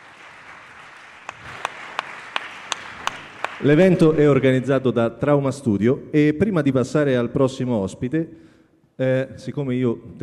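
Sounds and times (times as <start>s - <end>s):
audience applause: 0.0s - 4.3s
speech: 3.6s - 10.2s.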